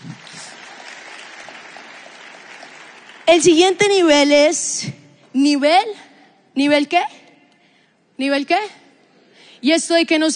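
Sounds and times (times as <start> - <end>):
audience applause: 0.0 - 3.6
speech: 3.3 - 6.0, 6.6 - 7.2, 8.2 - 8.8, 9.6 - 10.3.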